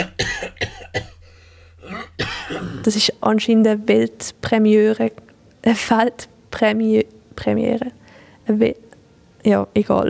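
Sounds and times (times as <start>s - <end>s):
person coughing after choking on something: 0.0s - 2.9s
speech: 2.8s - 8.8s, 9.4s - 10.0s.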